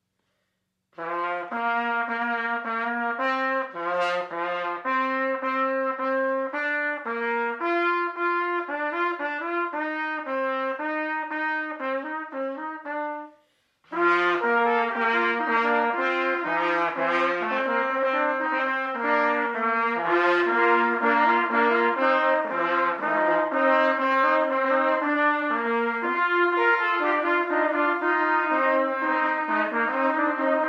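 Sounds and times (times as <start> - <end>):
trumpet: 1.0 - 30.6.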